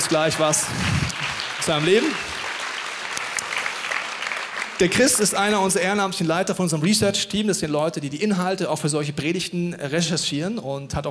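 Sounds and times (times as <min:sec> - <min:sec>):
audience applause: 0:00.0 - 0:06.0
speech: 0:00.1 - 0:02.3, 0:04.8 - 0:11.0.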